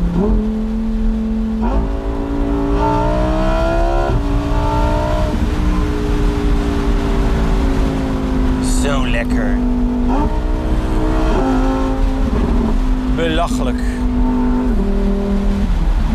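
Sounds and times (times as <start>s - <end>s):
Lamborghini V10 engine revving: 0.0s - 16.1s
speech: 0.2s - 0.6s.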